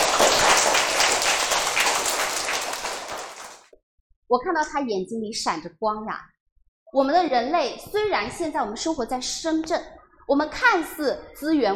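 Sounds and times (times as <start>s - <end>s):
audience applause: 0.0s - 3.7s
speech: 4.3s - 11.7s.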